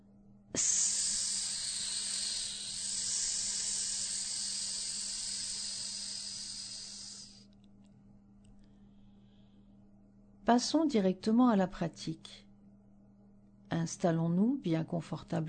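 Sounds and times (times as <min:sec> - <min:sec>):
speech: 0:00.6 - 0:01.0, 0:10.5 - 0:12.4, 0:13.7 - 0:15.4
person making high-pitched hiss imitating air brakes: 0:00.6 - 0:07.4.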